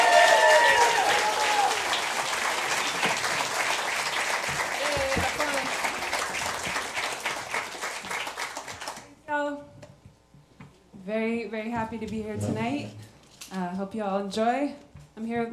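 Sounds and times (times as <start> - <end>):
audience applause at a live country music evening: 0.0 - 9.1
speech: 11.5 - 15.5.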